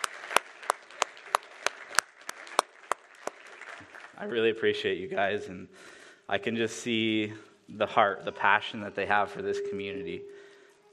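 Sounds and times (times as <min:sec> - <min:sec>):
audience round of applause: 0:00.0 - 0:05.0
speech: 0:04.2 - 0:10.4.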